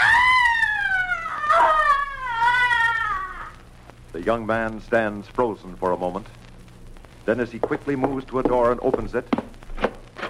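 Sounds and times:
blood-curdling shriek of frustration and anguish: 0.0 - 3.6
speech: 4.2 - 6.4, 7.2 - 9.5.

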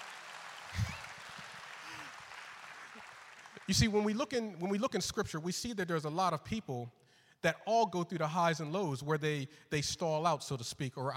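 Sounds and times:
audience clapping: 0.0 - 4.4
speech: 3.7 - 11.1.

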